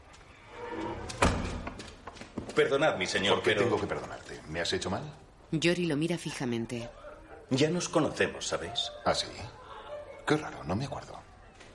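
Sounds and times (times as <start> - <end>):
door opening: 0.5 - 2.1
speech: 2.6 - 9.6, 10.3 - 11.3.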